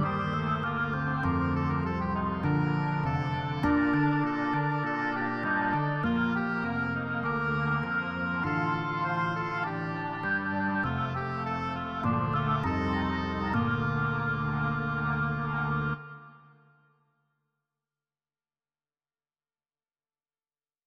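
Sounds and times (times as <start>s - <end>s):
fugue: 0.0s - 16.4s.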